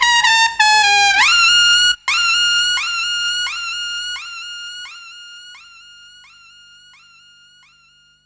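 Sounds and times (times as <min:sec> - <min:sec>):
trumpet with delay effect: 0:00.0 - 0:04.5.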